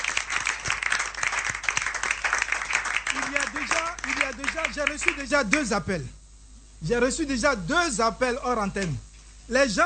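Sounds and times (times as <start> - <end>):
crowd at a religious gathering clapping and cheering for the Lord: 0.0 - 5.2
speech: 3.6 - 6.2, 6.8 - 9.8.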